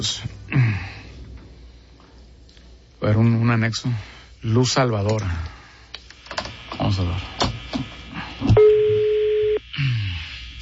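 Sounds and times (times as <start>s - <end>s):
speech: 0.0s - 1.0s, 3.0s - 5.5s, 6.9s - 7.4s
low noise: 0.0s - 10.6s
phone ringback tone: 8.6s - 9.6s.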